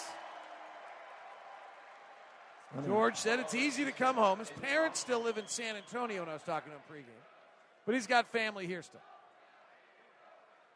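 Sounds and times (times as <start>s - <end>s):
crowd applause in arena: 0.0s - 6.8s
speech: 2.7s - 9.1s.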